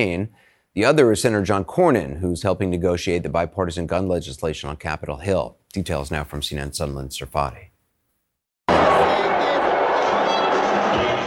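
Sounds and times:
speech: 0:00.0 - 0:07.7
crowd booing at a political convention: 0:08.7 - 0:11.2.

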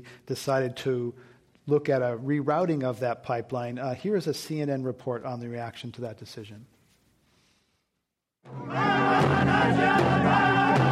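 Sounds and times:
speech: 0:00.0 - 0:06.7, 0:08.4 - 0:10.4
protest crowd cheering and whooping: 0:08.5 - 0:10.8
drumbeats: 0:08.8 - 0:10.8.

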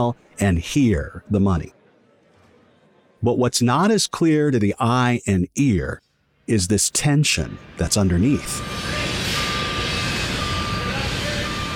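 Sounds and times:
speech: 0:00.0 - 0:01.8, 0:03.2 - 0:09.2
construction machinery rumble at a building site: 0:07.4 - 0:11.7
construction vehicle reversing beeps at a building site: 0:07.5 - 0:11.7.

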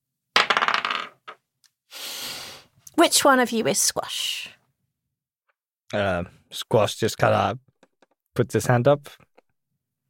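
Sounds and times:
dice being rolled: 0:00.4 - 0:01.4, 0:07.7 - 0:08.2
speech: 0:03.0 - 0:04.6, 0:05.9 - 0:07.6, 0:08.4 - 0:09.3.

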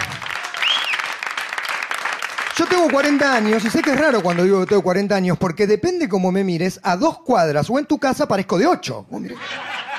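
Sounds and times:
audience applause: 0:00.0 - 0:04.9
high whistle: 0:00.6 - 0:01.1
speech: 0:02.6 - 0:09.6
laughter: 0:09.2 - 0:09.9.

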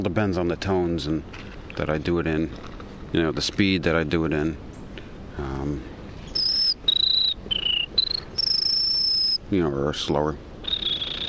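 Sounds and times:
speech: 0:00.0 - 0:04.7, 0:05.4 - 0:05.9, 0:09.5 - 0:10.5
human whistled imitation of buzzy warbler song: 0:06.3 - 0:09.4, 0:10.6 - 0:11.2.

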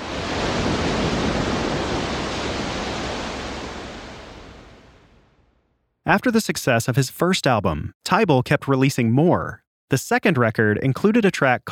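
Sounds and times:
ocean waves splashing on the shore: 0:00.0 - 0:05.3
speech: 0:06.1 - 0:11.7.

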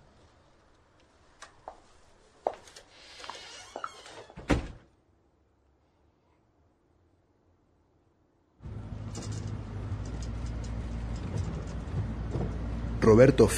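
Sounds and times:
door opening: 0:02.8 - 0:04.8, 0:08.6 - 0:12.8
steady low engine rumble: 0:08.6 - 0:13.5
speech: 0:13.1 - 0:13.5.

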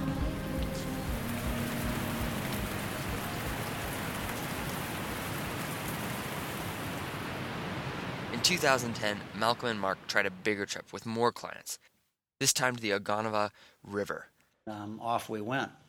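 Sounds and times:
heavy rain in a storm: 0:00.2 - 0:10.1
speech: 0:08.4 - 0:15.8.

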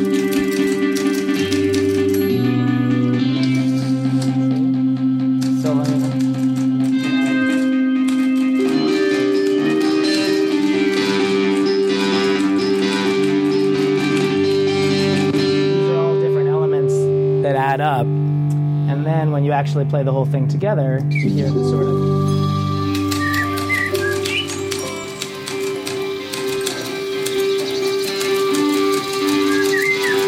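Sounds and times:
typewriter: 0:00.0 - 0:02.4, 0:05.4 - 0:15.3, 0:22.9 - 0:30.2
rock guitar: 0:00.0 - 0:19.2, 0:21.0 - 0:30.2
speech: 0:19.6 - 0:22.4.

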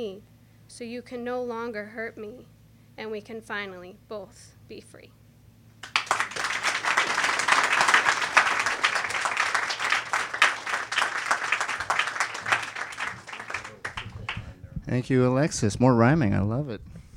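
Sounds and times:
speech: 0:00.0 - 0:05.2, 0:14.9 - 0:16.9
audience applause: 0:05.8 - 0:14.6.

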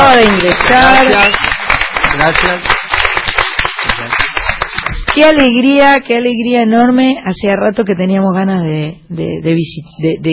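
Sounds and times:
small group applauding in a studio: 0:00.0 - 0:05.6
speech: 0:00.2 - 0:01.5, 0:02.2 - 0:02.8, 0:05.2 - 0:10.3.

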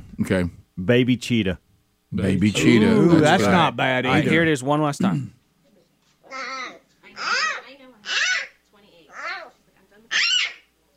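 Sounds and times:
speech: 0:00.2 - 0:05.4
baby panda bear vocalizing: 0:06.3 - 0:10.7.

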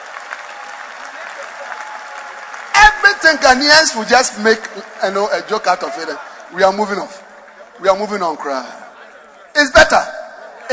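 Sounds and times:
audience clapping: 0:00.0 - 0:08.2
speech: 0:03.2 - 0:07.2, 0:07.8 - 0:08.8, 0:09.6 - 0:10.0.

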